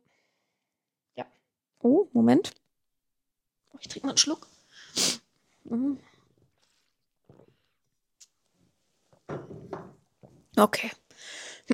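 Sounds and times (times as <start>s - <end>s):
speech: 1.2s - 2.6s, 3.8s - 6.1s, 10.6s - 11.7s
sneeze: 4.9s - 5.2s.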